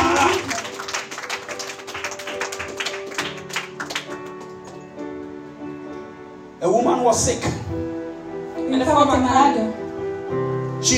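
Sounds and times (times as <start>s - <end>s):
audience clapping: 0.0s - 5.0s
speech: 6.6s - 7.9s, 8.7s - 9.8s.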